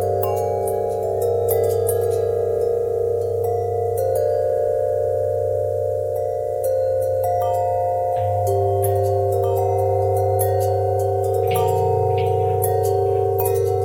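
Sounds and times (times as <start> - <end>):
long harmonic bells: 0.0 - 13.8.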